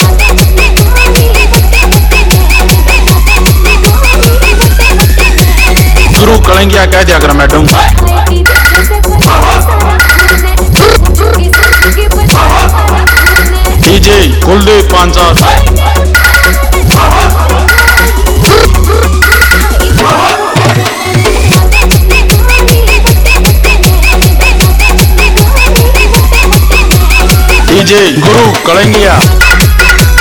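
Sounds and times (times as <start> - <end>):
bass-heavy music mix: 0.0 - 30.2.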